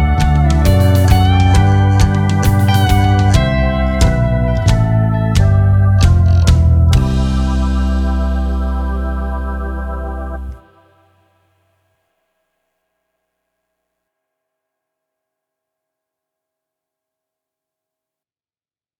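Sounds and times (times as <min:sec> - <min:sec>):
bassline: 0:00.0 - 0:11.2.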